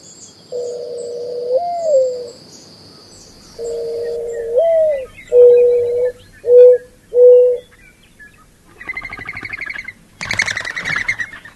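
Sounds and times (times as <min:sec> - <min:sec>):
faint high hiss: 0:00.0 - 0:11.5
Mourning dove cooing: 0:00.5 - 0:02.4, 0:03.2 - 0:11.5.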